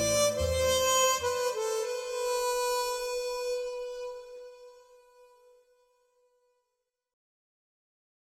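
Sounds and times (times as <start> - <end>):
instrumental theme music: 0.0 - 6.0.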